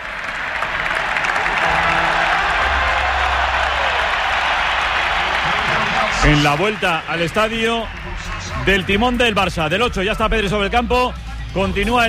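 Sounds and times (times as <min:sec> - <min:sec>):
stadium crowd ovation for Pedri at Camp Nou: 0:00.0 - 0:09.8
speech: 0:06.2 - 0:12.0.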